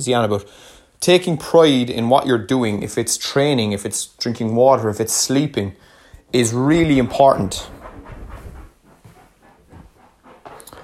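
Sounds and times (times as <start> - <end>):
speech: 0.0 - 7.8
pet scratching the couch: 6.4 - 10.8.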